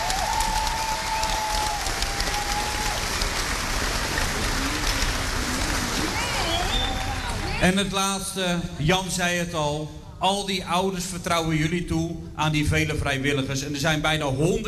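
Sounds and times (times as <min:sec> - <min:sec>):
crowd clapping: 0:00.0 - 0:07.8
faint whistles: 0:06.2 - 0:07.2
speech: 0:07.6 - 0:14.6.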